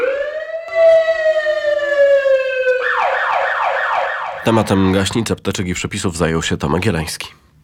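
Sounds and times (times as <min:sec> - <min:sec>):
fire engine siren: 0:00.0 - 0:04.5
speech: 0:04.4 - 0:07.4.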